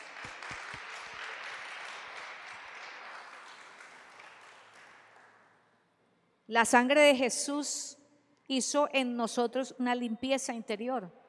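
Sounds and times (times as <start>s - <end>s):
audience applause: 0.0s - 5.4s
speech: 6.5s - 11.2s.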